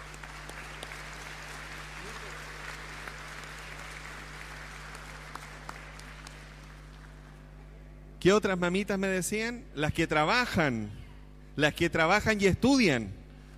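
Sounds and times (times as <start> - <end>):
audience applause: 0.0 - 7.3
speech: 8.2 - 11.0, 11.6 - 13.2.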